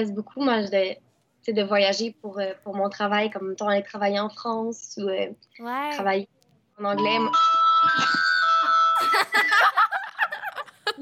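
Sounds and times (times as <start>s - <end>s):
speech: 0.0s - 8.3s
phone ringtone playing: 7.0s - 9.6s
laughter: 9.0s - 11.0s.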